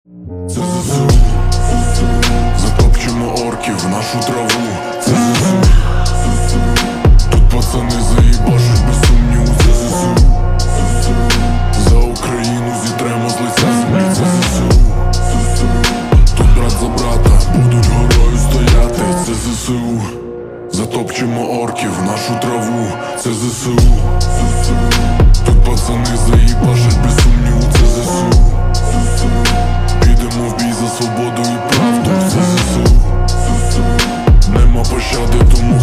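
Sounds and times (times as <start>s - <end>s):
slowed reverb music: 0.1s - 35.8s.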